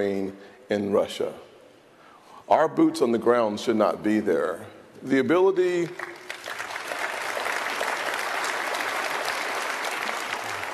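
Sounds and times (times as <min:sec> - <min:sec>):
speech: 0:00.0 - 0:01.5, 0:02.5 - 0:06.2
audience applauding and clapping: 0:05.9 - 0:10.7.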